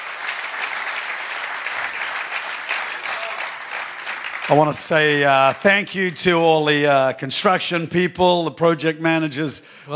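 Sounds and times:
audience applauding for the musicians: 0:00.0 - 0:06.4
speech: 0:04.5 - 0:09.9.

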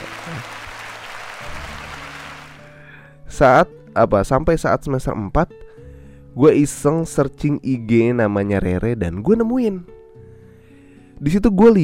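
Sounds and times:
applause sound effect: 0:00.0 - 0:02.7
speech: 0:00.3 - 0:00.6, 0:03.4 - 0:05.8, 0:06.4 - 0:10.0, 0:11.2 - 0:11.8.

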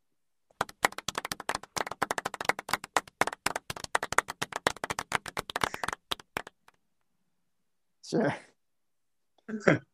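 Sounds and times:
quiet polite golf clap: 0:00.5 - 0:06.8
speech: 0:08.1 - 0:08.5, 0:09.5 - 0:09.9.

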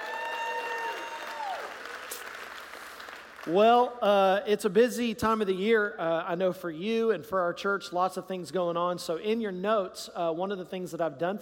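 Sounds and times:
church congregation applause during a Heartland church service: 0:00.0 - 0:04.0
speech: 0:03.4 - 0:11.4.

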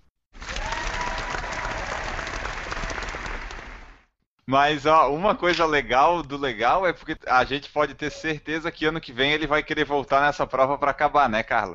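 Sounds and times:
round of applause: 0:00.4 - 0:04.2
speech: 0:04.5 - 0:11.7.

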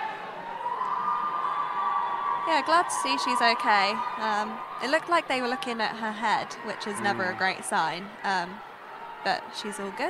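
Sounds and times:
crowd cheering at rugby match: 0:00.0 - 0:10.0
speech: 0:02.5 - 0:10.0.

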